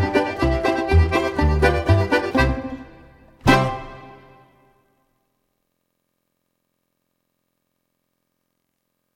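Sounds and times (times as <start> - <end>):
balalaika backing track: 0.0 - 4.8.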